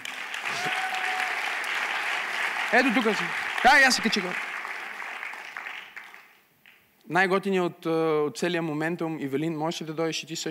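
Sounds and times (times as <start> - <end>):
audience applause: 0.0 - 6.4
speech: 2.7 - 4.5, 7.1 - 10.4.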